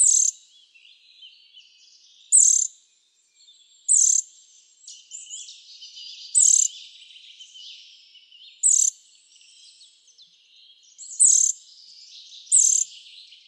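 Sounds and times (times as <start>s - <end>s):
Eurasian nuthatch calls: 0.0s - 0.4s, 1.6s - 2.7s, 3.8s - 4.3s, 4.9s - 6.9s, 8.5s - 9.0s, 11.0s - 11.6s, 12.4s - 13.0s
chorus of softer chirping birds: 0.0s - 13.4s.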